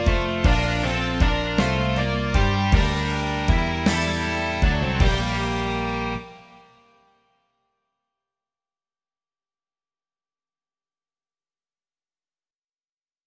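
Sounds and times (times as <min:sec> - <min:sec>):
rock music: 0:00.0 - 0:06.7.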